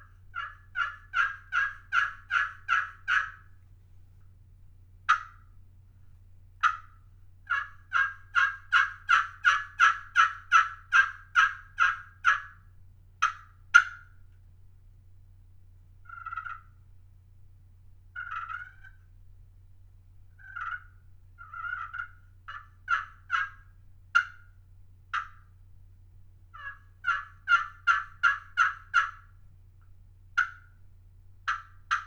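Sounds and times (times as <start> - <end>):
slate-over-glass turkey call played with striker yelping: 0.0 - 3.6, 5.1 - 5.5, 6.6 - 12.6, 13.2 - 14.1, 16.1 - 16.7, 18.2 - 19.0, 20.4 - 24.5, 25.1 - 25.5, 26.5 - 29.3, 30.4 - 30.8, 31.5 - 32.0.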